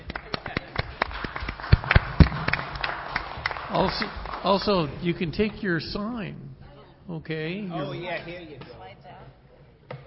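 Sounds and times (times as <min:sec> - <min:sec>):
round of applause: 0:00.0 - 0:05.0
speech: 0:03.7 - 0:09.0.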